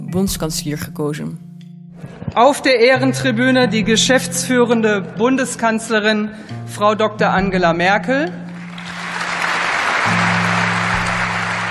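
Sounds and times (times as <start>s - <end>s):
speech: 0.1s - 8.4s
Bundestag members applauding Angela Merkel: 8.5s - 11.6s.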